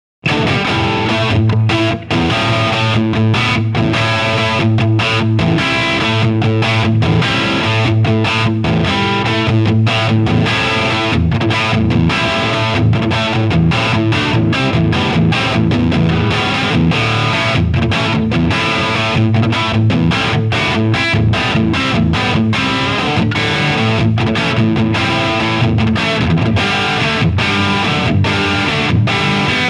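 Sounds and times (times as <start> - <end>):
electric guitar on bridge pickup through Marshall 2203 amp and Marshall 412 cabinet: 0.2 - 29.6.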